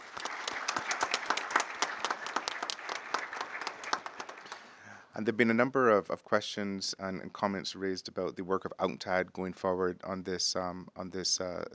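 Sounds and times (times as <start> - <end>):
audience applause for panelists: 0.0 - 4.8
speech: 5.2 - 11.7.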